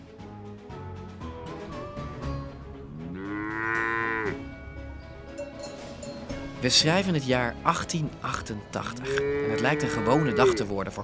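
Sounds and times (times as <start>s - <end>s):
cattle lowing and mooing: 2.9s - 4.5s, 9.0s - 10.7s
speech: 6.6s - 11.0s.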